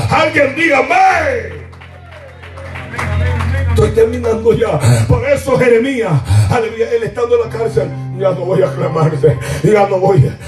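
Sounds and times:
crowd clapping: 0.0s - 4.7s
speech: 0.1s - 1.6s, 3.8s - 10.4s.

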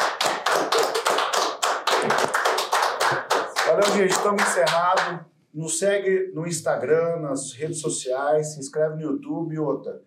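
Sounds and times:
round of clapping: 0.0s - 5.2s
speech: 3.8s - 10.0s.

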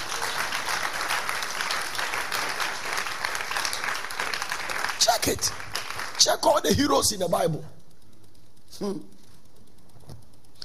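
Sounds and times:
audience clapping in church: 0.0s - 6.7s
speech: 5.0s - 5.6s, 6.2s - 7.8s, 8.8s - 9.2s.

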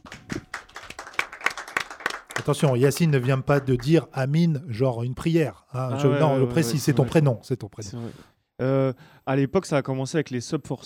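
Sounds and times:
audience clapping: 0.0s - 4.2s
speech: 2.4s - 10.8s.

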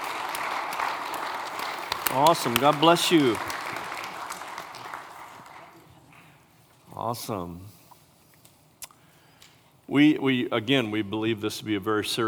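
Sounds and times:
audience applauding a family: 0.0s - 5.9s
speech: 2.1s - 3.5s, 7.1s - 7.8s, 9.9s - 12.2s.

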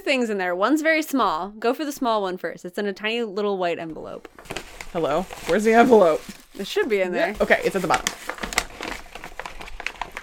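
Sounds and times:
speech: 0.0s - 8.3s
paper bag crinkling as someone digs through it: 4.4s - 10.2s.

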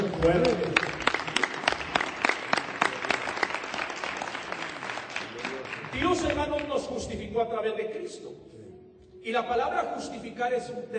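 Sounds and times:
audience applause: 0.0s - 6.7s
speech: 0.2s - 0.9s, 7.3s - 8.6s, 9.2s - 10.9s.

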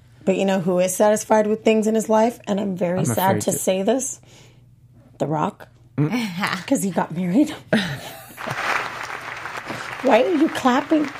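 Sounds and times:
speech: 0.2s - 4.5s, 5.2s - 8.7s, 10.0s - 11.1s
hand clapping: 8.4s - 11.1s.

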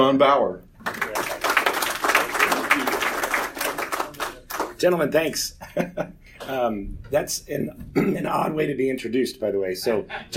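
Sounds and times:
speech: 0.1s - 1.4s, 4.8s - 10.3s
audience applauding: 0.8s - 4.8s.

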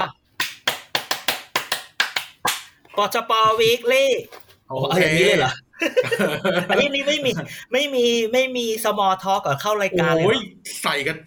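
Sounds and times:
crowd clapping: 0.4s - 2.7s
speech: 3.0s - 11.2s
laughter: 5.5s - 7.8s.

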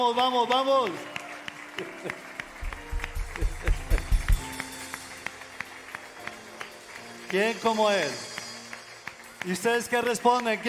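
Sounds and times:
speech: 0.0s - 1.2s, 1.8s - 2.3s, 7.3s - 8.3s, 9.4s - 10.6s
loud audience applause: 0.0s - 10.6s
laughter: 1.7s - 4.5s.

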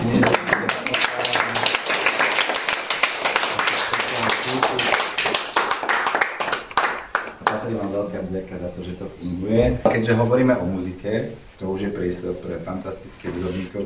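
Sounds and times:
audience applause: 0.0s - 7.9s
speech: 8.4s - 13.8s.

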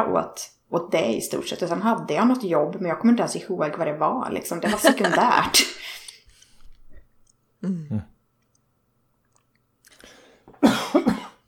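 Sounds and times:
speech: 0.0s - 6.0s, 7.6s - 8.1s
person coughing: 7.6s - 8.1s, 10.5s - 11.4s.

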